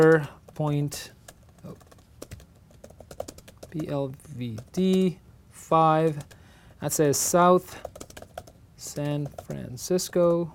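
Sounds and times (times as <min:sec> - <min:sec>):
speech: 0:00.0 - 0:01.8, 0:03.7 - 0:07.9, 0:08.8 - 0:10.5
typing on a computer keyboard into an Excel sheet: 0:00.0 - 0:05.1, 0:06.0 - 0:06.4, 0:07.8 - 0:10.4.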